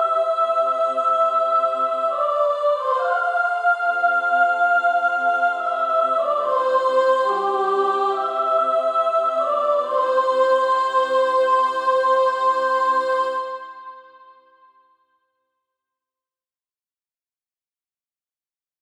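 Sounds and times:
female choir singing: 0:00.0 - 0:14.5.

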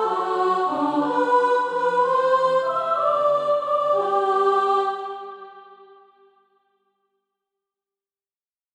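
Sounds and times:
soprano singing: 0:00.0 - 0:05.9.

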